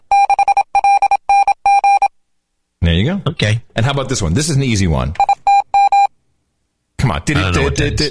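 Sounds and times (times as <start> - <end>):
Morse code call sign tones: 0.1 - 2.1, 5.2 - 6.1
speech: 3.0 - 5.3, 7.1 - 8.1.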